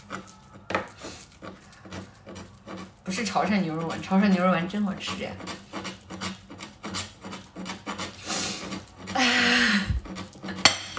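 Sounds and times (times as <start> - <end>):
kitchen knife chopping food: 0.0 - 9.2, 9.9 - 10.9
speech: 3.1 - 5.6
kitchen knife knocking against a plate: 10.5 - 10.9.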